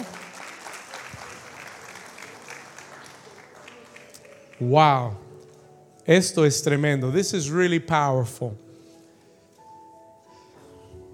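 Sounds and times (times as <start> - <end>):
audience applause: 0.0 - 4.7
speech: 4.6 - 5.2, 6.1 - 8.6.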